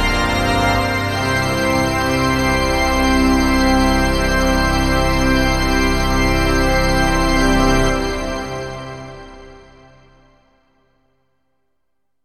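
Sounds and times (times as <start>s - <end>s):
opening theme organ music: 0.0s - 9.1s.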